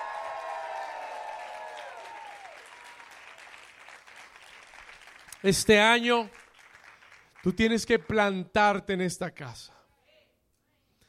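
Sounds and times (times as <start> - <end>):
audience applauding and cheering: 0.0 - 8.2
speech: 5.4 - 6.4, 7.4 - 9.8.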